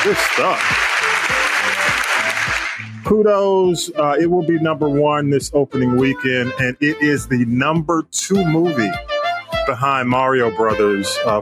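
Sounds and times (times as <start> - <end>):
speech: 0.0 - 1.8, 2.8 - 11.4
applause: 0.0 - 3.0.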